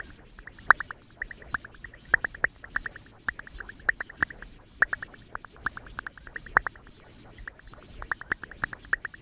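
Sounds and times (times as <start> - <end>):
3D bubbles popping: 0.6 - 5.1, 5.9 - 6.8, 7.4 - 9.2.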